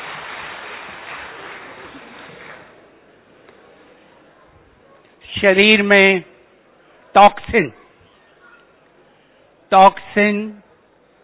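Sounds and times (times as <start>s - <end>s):
audience at a health talk clapping: 0.0s - 2.9s
speech: 5.3s - 6.3s, 7.2s - 7.8s, 9.7s - 10.6s.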